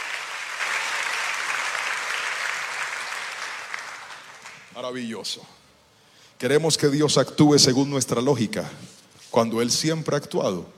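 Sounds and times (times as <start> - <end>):
audience applause: 0.0 - 4.7
speech: 4.8 - 5.6, 6.4 - 10.7.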